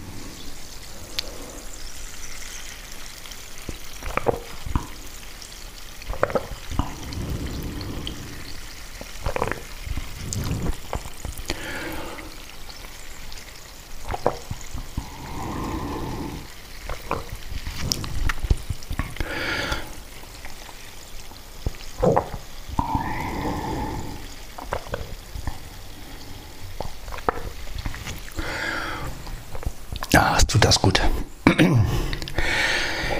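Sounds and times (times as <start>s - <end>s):
water pouring into a glass: 0.1s - 29.9s
person swallowing and gulping water: 3.7s - 5.2s, 6.0s - 12.7s, 14.0s - 30.4s, 31.5s - 33.1s.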